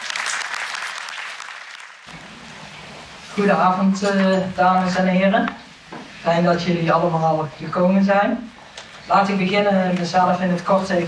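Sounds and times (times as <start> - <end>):
audience applauding: 0.0 - 2.1
speech: 3.4 - 5.6, 6.2 - 11.0.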